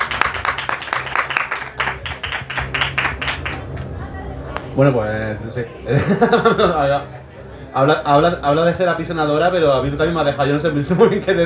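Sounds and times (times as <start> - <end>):
audience applause: 0.0 - 4.0
speech: 4.8 - 11.4
laughter: 5.8 - 7.2.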